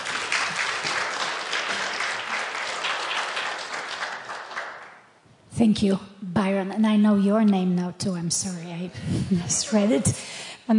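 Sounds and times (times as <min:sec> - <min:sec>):
audience applause welcoming a speaker to the stage at a church service: 0:00.0 - 0:05.2
speech: 0:05.6 - 0:10.7.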